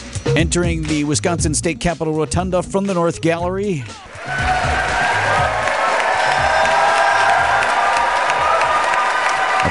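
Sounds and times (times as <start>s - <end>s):
speech: 0.4s - 4.5s
applause in the Wisconsin State Capitol Rotunda: 4.1s - 9.6s.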